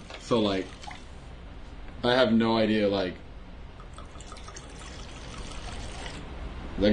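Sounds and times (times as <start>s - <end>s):
speech: 0.3s - 0.8s, 2.0s - 3.2s, 6.8s - 6.9s
rum and coke poured into a glass: 3.8s - 6.2s.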